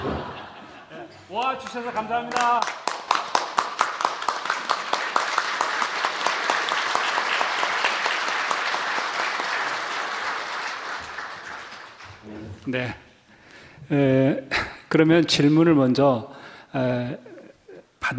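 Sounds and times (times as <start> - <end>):
laughter: 0.0 - 1.3
speech: 1.3 - 2.8, 12.7 - 13.0, 13.9 - 17.3
a few people clapping on stage: 1.4 - 12.6.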